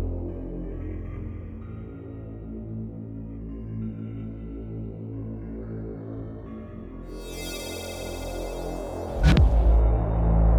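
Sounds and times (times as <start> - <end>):
acid electronic music: 7.1 - 10.4.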